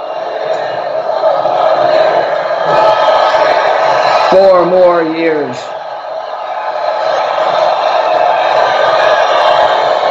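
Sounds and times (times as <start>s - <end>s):
rally crowd cheering and shouting: 0.0s - 10.0s
speech: 4.3s - 5.8s.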